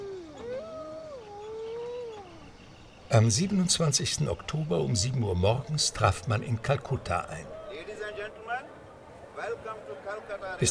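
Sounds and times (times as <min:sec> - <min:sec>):
wolves howling: 0:00.0 - 0:08.3
speech: 0:03.1 - 0:08.7, 0:09.4 - 0:10.6.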